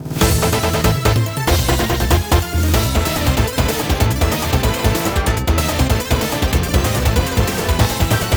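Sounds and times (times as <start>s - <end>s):
miniboss combat game music: 0.0s - 8.3s.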